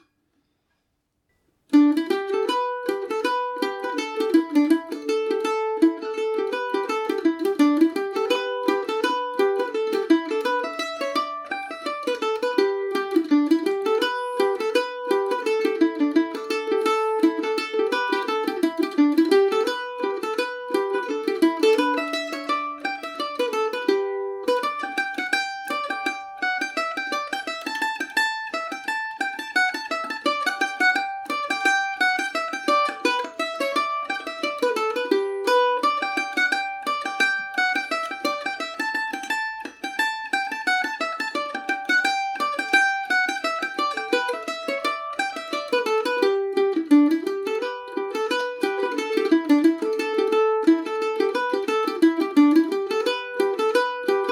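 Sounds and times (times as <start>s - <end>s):
mandolin tune in G major: 0.0s - 54.3s.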